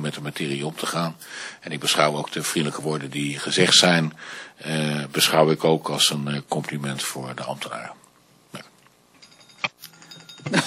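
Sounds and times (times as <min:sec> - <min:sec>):
speech: 0:00.0 - 0:08.6, 0:10.4 - 0:10.6
bell ringing: 0:09.2 - 0:10.6.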